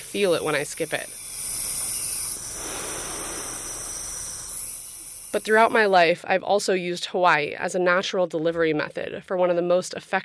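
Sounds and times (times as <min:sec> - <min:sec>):
nebulizer hissing salt water mist: 0:00.0 - 0:06.0
speech: 0:00.1 - 0:01.2, 0:05.4 - 0:10.2.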